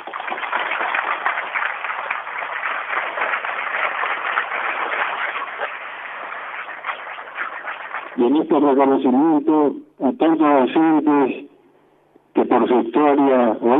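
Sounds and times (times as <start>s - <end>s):
warm audience applause: 0.0s - 8.4s
speech: 8.2s - 11.5s, 12.4s - 13.7s.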